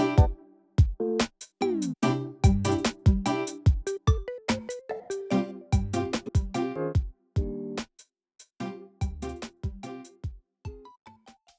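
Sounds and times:
menu background music: 0.0 - 0.4, 1.0 - 7.7.

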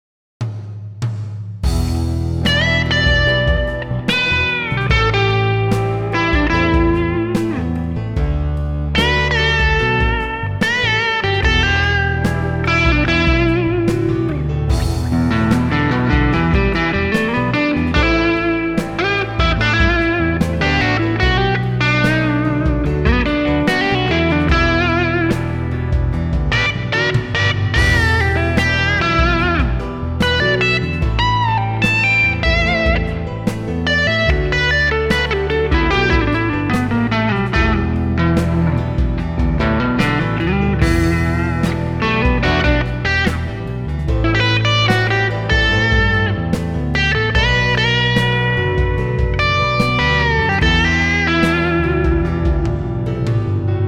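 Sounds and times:
blues music: 1.0 - 53.8.

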